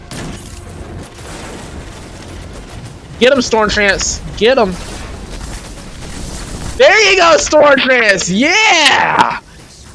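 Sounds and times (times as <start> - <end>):
gunfire in a Destiny 2 Gambit match: 0.0 - 9.9
speech: 3.2 - 5.0, 6.8 - 9.4.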